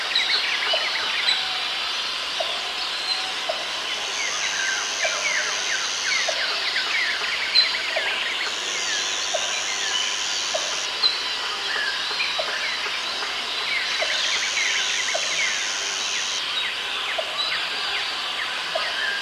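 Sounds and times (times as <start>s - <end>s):
jungle chirps and insect-like whine: 0.0s - 19.2s.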